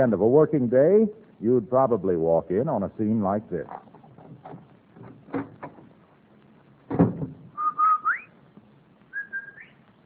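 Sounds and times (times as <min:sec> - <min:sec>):
speech: 0:00.0 - 0:04.6
door clatter: 0:03.7 - 0:06.0, 0:06.9 - 0:07.5
whistled jingle announcing arrival home: 0:07.6 - 0:08.4, 0:09.1 - 0:09.8.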